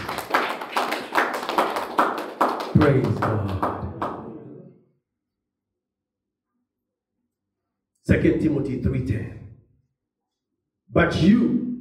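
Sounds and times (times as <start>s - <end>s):
audience clapping: 0.0s - 4.5s
speech: 2.8s - 3.7s, 8.1s - 9.5s, 11.0s - 11.6s.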